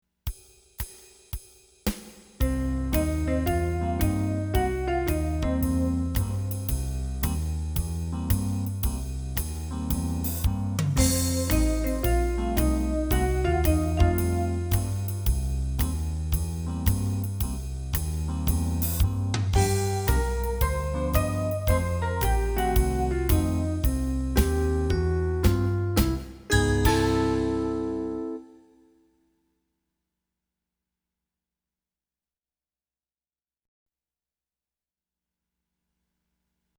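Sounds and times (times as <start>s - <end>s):
blues band jamming: 2.4s - 28.4s.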